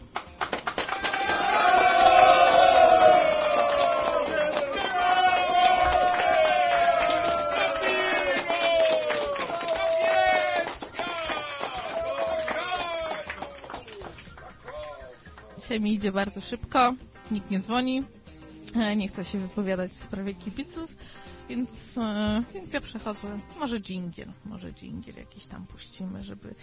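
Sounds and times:
applause: 0.0 - 15.6
crowd cheering: 0.4 - 15.6
speech: 15.8 - 26.6.

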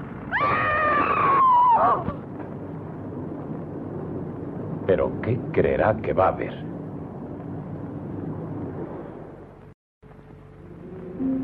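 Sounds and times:
woman screaming in terror: 0.3 - 2.2
speech: 4.9 - 6.7.

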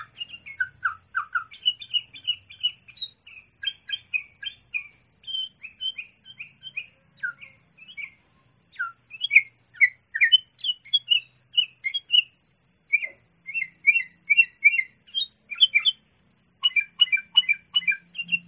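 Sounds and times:
sooty-headed bulbul song: 0.0 - 18.4.

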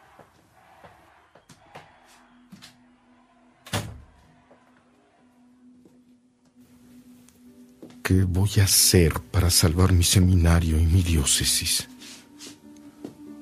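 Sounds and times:
door swinging shut with a solid thud as someone leaves: 3.7 - 4.1
speech: 8.1 - 11.9.

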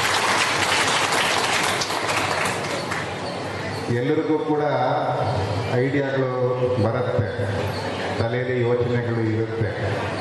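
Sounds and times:
audience applause at a gathering in Mysuru: 0.0 - 3.2
speech: 3.9 - 10.2.

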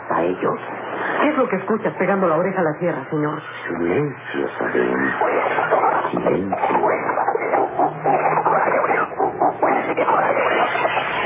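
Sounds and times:
speech: 0.2 - 7.1
frightened birds squawking and fleeing: 4.3 - 11.2.

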